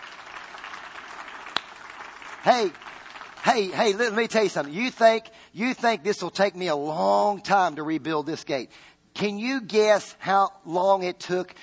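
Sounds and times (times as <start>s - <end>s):
audience clapping: 0.0s - 5.0s
speech: 2.4s - 11.6s.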